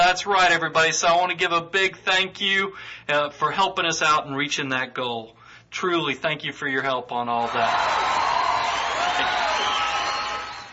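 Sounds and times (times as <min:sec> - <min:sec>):
speech: 0:00.1 - 0:09.4
canned crowd applause sound effect: 0:07.6 - 0:10.7.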